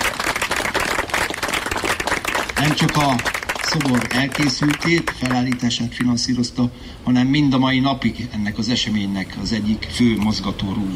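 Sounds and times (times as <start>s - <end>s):
audience applauding at a memorial statue ceremony: 0.0s - 6.1s
speech: 2.6s - 10.9s.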